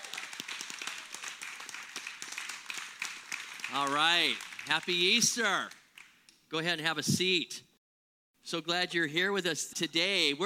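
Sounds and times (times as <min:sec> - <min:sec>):
audience applauding: 0:00.0 - 0:06.2
speech: 0:03.7 - 0:05.8, 0:06.5 - 0:07.7, 0:08.5 - 0:10.4.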